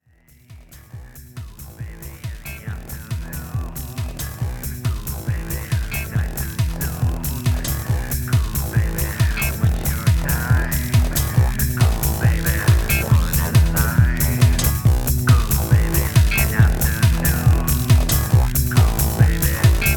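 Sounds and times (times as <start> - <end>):
jazz music: 3.3 - 19.9.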